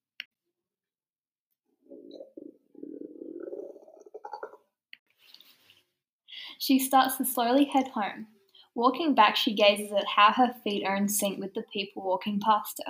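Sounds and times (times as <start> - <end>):
stomach gurgling and rumbling: 1.8 - 4.7
speech: 6.6 - 12.8.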